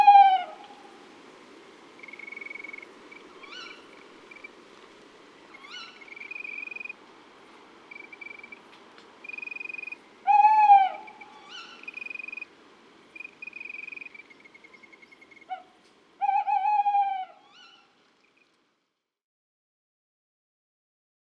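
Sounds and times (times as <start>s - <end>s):
owl: 2.0s - 4.5s, 5.5s - 7.0s, 9.2s - 12.5s, 13.2s - 18.5s.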